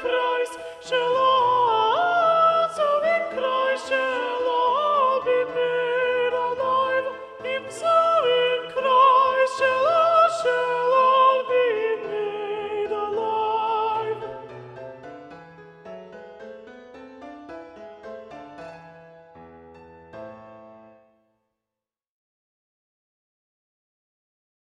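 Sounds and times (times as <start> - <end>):
soprano singing: 0.0 - 15.4.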